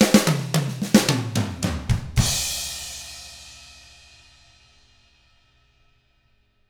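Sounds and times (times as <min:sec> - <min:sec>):
pop rock drums: 0:00.0 - 0:03.1.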